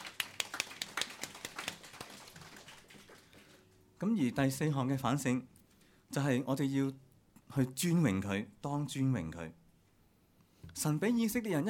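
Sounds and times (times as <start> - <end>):
audience applauding from a distance: 0.0 - 3.6
speech: 4.0 - 9.6, 10.8 - 11.6.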